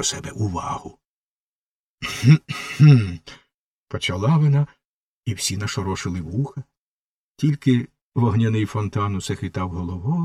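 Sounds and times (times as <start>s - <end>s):
speech: 0.0s - 1.0s, 2.0s - 6.7s, 7.4s - 10.2s
person imitating an affected cough: 2.0s - 3.3s.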